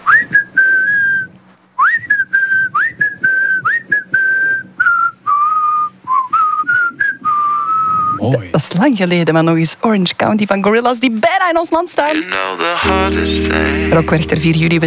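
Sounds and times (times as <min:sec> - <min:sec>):
person whistling a tune: 0:00.0 - 0:08.2
speech: 0:08.8 - 0:14.8.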